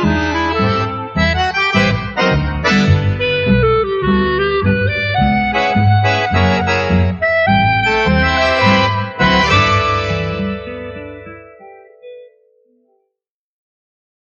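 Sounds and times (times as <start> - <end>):
instrumental quartet playing: 0.0 - 11.4.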